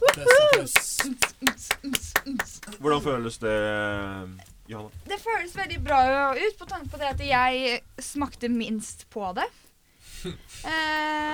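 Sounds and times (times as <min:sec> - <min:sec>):
people clapping hands: 0:00.0 - 0:02.9
speech: 0:02.9 - 0:09.6, 0:10.2 - 0:11.3.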